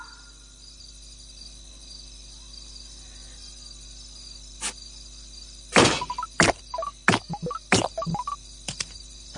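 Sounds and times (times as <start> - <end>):
iPhone game sound effects: 5.9 - 8.4.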